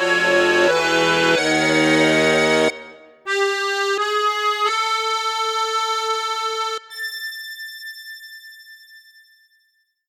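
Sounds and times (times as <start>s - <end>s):
accordion with bass flute, flute and high flute registers: 0.0s - 7.0s.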